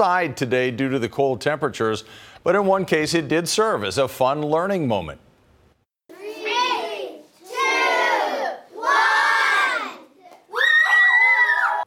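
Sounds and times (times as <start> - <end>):
speech: 0.0 - 5.3
grade 2 schoolchildren shouting and cheering: 6.1 - 11.8.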